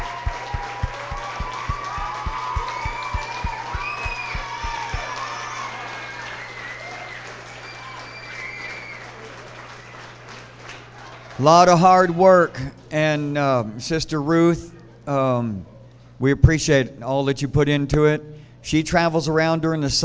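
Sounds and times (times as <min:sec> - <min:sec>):
audience applause: 0:00.0 - 0:11.4
speech: 0:11.4 - 0:20.0.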